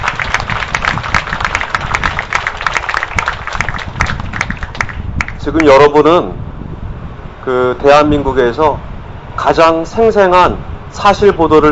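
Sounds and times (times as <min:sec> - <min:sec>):
crowd applauding: 0:00.0 - 0:05.4
speech: 0:05.5 - 0:06.4, 0:07.4 - 0:11.7.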